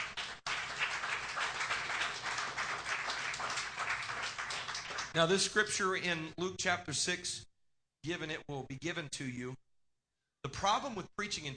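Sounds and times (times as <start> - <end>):
audience clapping hands: 0.0 - 5.2
speech: 5.2 - 9.6, 10.4 - 11.5.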